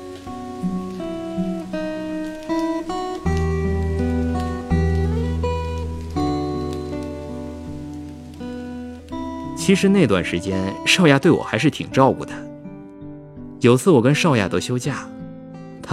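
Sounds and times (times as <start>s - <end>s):
guitar playing: 0.0s - 15.9s
rain falling: 0.0s - 15.9s
speech: 9.7s - 12.5s, 13.6s - 15.2s.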